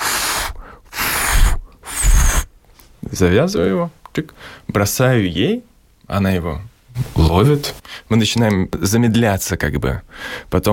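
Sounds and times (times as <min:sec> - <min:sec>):
person blowing puffs of breath miming blowing up a balloon: 0:00.0 - 0:02.5
speech: 0:03.2 - 0:10.7.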